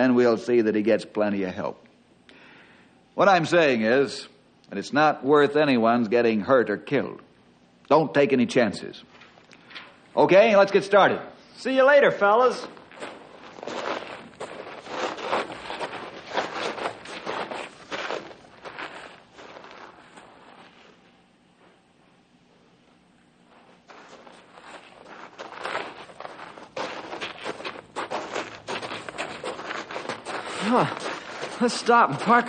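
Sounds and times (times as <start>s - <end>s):
speech: 0.0s - 1.8s, 3.2s - 7.2s, 7.9s - 9.1s, 10.2s - 13.1s, 31.6s - 32.4s
footsteps of several men walking on a long trek: 12.4s - 22.2s, 23.4s - 32.4s.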